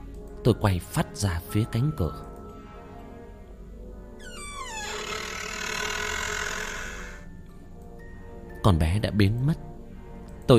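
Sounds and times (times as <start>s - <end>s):
speech: 0.4s - 2.3s, 8.6s - 9.7s
window hinges and frame creaking open: 4.2s - 7.3s.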